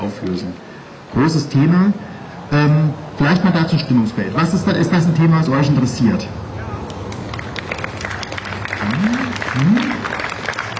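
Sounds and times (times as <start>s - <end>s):
speech: 0.0s - 6.4s
audience applause: 7.1s - 10.7s.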